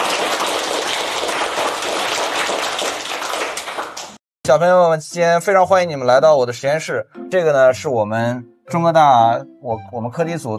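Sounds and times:
crowd applause: 0:00.0 - 0:04.2
speech: 0:04.5 - 0:10.5.

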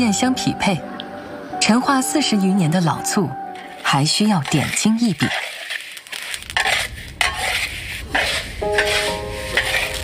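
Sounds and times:
speech: 0:00.0 - 0:00.9, 0:01.6 - 0:05.5
sesame seeds stirred and tossed in a hot pan: 0:03.6 - 0:10.0.

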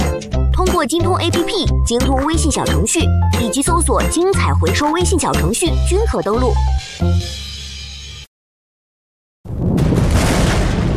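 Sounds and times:
speech: 0:00.2 - 0:07.4
thunder: 0:09.5 - 0:10.9.

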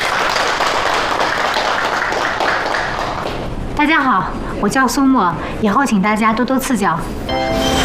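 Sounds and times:
office colleagues clapping: 0:00.0 - 0:03.5
speech: 0:03.8 - 0:07.7.

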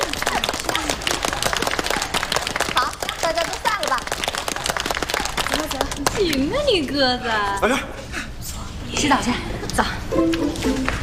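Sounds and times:
group applause congratulating a cast member: 0:00.0 - 0:06.6
speech: 0:06.2 - 0:08.0, 0:09.0 - 0:11.0.

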